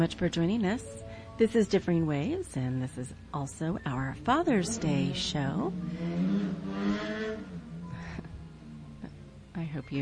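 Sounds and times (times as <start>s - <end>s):
speech: 0.0s - 7.1s, 9.8s - 10.0s
loud motorcycles driving past: 4.2s - 9.1s.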